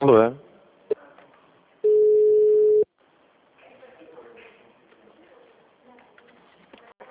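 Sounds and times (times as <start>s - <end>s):
steady telephone busy tone after a dropped call: 1.8s - 2.9s.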